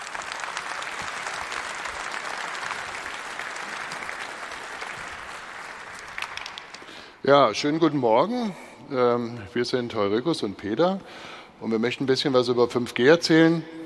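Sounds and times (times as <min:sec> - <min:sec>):
audience applause: 0:00.0 - 0:07.2
speech: 0:07.2 - 0:13.8.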